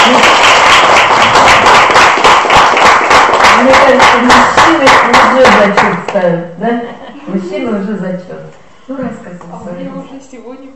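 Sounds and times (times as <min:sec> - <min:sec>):
audience applause cheering a woman at a gathering: 0:00.0 - 0:06.0.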